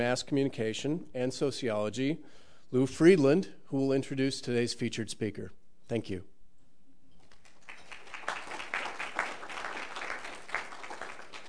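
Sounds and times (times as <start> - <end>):
speech: 0.0 - 6.3
audience applause: 7.3 - 11.4.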